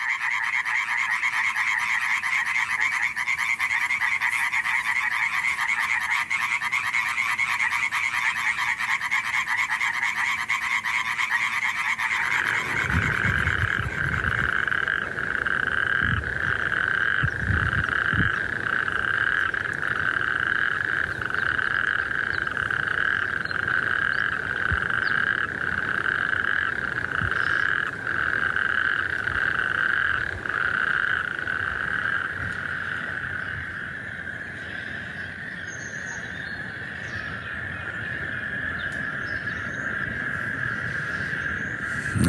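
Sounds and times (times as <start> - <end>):
lower throaty croaking bursts: 0.0 - 32.9, 40.7 - 42.2
chorus of pool frogs calling to females in spring: 0.0 - 42.2.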